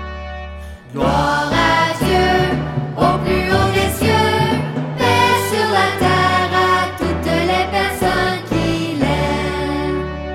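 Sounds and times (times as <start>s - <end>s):
children singing a hymn of praise: 0.8s - 10.2s.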